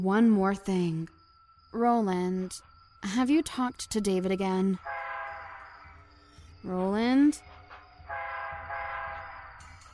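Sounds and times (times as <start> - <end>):
speech: 0.0 - 5.0, 6.6 - 7.6
train horn on approaching train: 4.8 - 5.9, 8.1 - 9.6.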